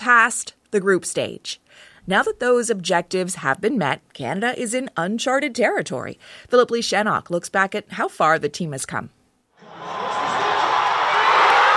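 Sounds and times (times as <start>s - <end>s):
speech: 0.0s - 9.2s
soccer fans cheering a goal at a watch party in Toronto: 9.6s - 11.7s.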